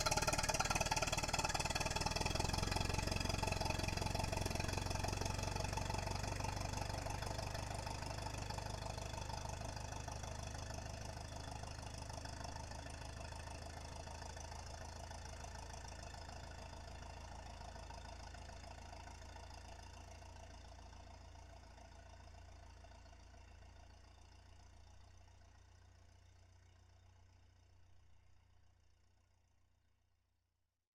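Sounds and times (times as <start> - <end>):
Model T Ford car starting up and driving off: 0.0 - 19.6.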